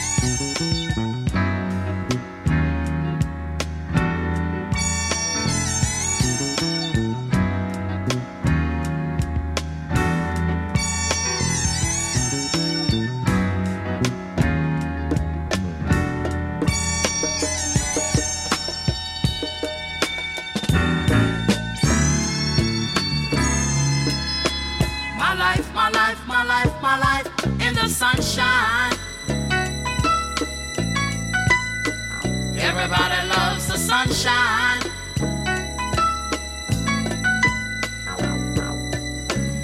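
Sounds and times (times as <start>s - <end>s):
original studio recording of a song: 0.0s - 39.6s
speech: 0.2s - 1.2s.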